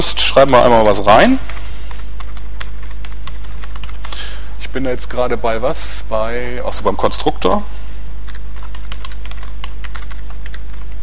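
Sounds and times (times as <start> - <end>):
speech: 0.4 - 1.6, 4.7 - 7.8
computer keyboard typing code: 0.4 - 4.2, 8.2 - 11.0.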